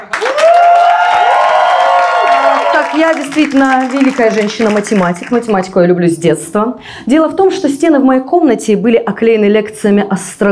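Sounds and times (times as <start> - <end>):
audience applause: 0.0 - 5.5
speech: 3.0 - 10.5.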